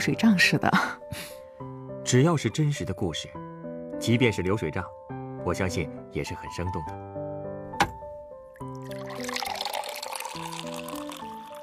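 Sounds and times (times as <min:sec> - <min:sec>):
speech: 0:00.0 - 0:01.3, 0:02.1 - 0:03.4, 0:04.0 - 0:07.2
lemonade pouring into a glass: 0:08.6 - 0:11.6.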